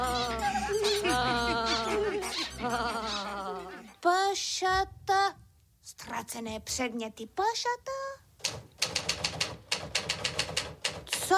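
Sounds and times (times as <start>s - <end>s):
laughter: 0.0s - 4.0s
speech: 6.2s - 8.0s
typewriter typing: 8.5s - 11.3s.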